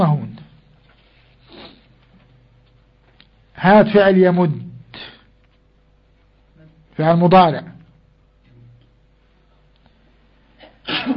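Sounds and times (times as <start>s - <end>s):
person sneezing: 1.4s - 1.9s, 10.6s - 11.1s
speech: 3.6s - 4.7s, 7.0s - 7.8s.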